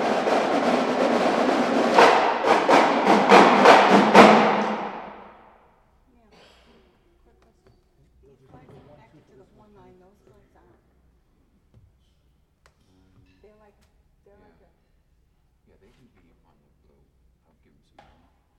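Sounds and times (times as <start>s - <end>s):
drum solo: 0.0s - 5.3s.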